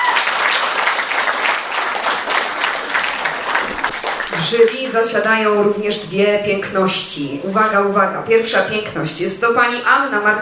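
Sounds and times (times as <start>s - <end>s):
audience applause: 0.0s - 4.9s
speech: 4.4s - 10.3s.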